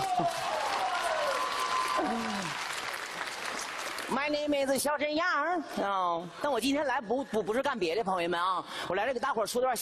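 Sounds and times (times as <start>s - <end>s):
audience applause: 0.0s - 4.3s
speech: 0.2s - 0.4s, 4.1s - 9.7s.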